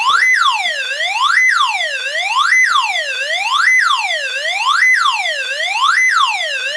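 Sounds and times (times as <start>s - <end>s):
electronic ambulance siren wailing: 0.0s - 6.7s.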